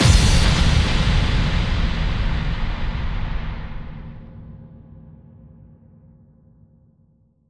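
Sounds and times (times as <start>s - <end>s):
bass drum FX kicks: 0.0s - 4.5s.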